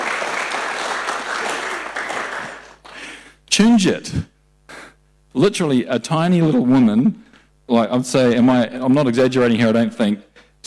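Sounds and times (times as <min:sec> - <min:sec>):
applause: 0:00.0 - 0:03.1
speech: 0:03.6 - 0:04.3, 0:05.3 - 0:10.3.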